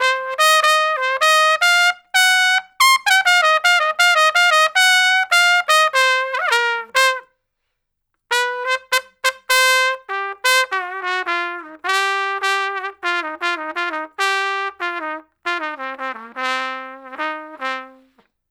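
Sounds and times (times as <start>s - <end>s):
traditional jazz trumpet solo: 0.0s - 7.3s, 8.3s - 18.2s.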